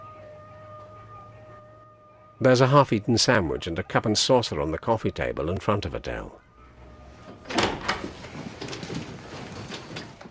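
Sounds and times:
speech: 2.4s - 6.4s
door: 7.3s - 10.2s.

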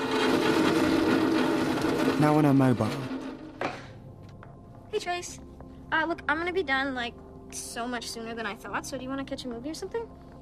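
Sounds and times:
chair dragged across floor into the kitchen: 0.0s - 4.0s
speech: 2.2s - 3.1s, 4.9s - 10.2s.

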